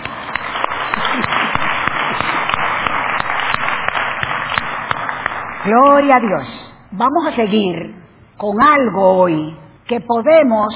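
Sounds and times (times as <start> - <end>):
crowd applauding: 0.0 - 6.1
speech: 5.6 - 10.7.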